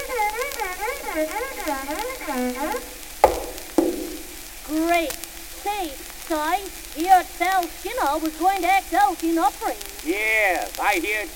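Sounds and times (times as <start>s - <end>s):
one-string fiddle bowed like sawing wood: 0.0s - 3.1s
speech: 1.2s - 2.9s, 5.8s - 11.3s
sharp knocks: 1.4s - 4.4s.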